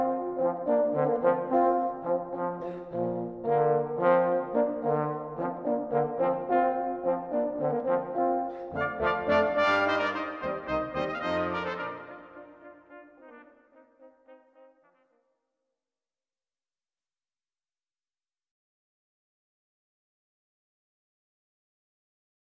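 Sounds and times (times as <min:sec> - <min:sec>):
brass band playing a hornpipe: 0:00.0 - 0:14.9.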